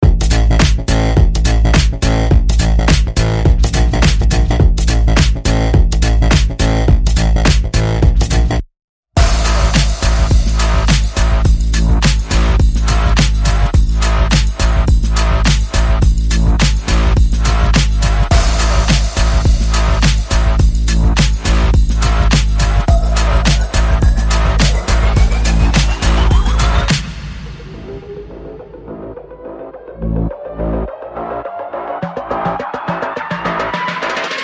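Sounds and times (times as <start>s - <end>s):
percussion: 0.0s - 8.6s, 9.2s - 34.4s
bass: 0.0s - 34.4s
sound effects: 9.2s - 13.7s, 17.4s - 34.4s.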